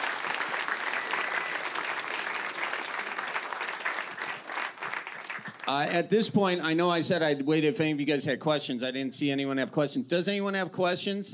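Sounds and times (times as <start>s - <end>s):
audience applause: 0.0s - 6.0s
speech: 5.7s - 11.3s.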